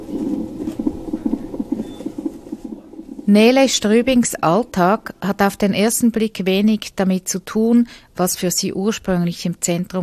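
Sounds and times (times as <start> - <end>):
fetal heartbeat on a monitor: 0.0 - 5.3
speech: 3.3 - 10.0.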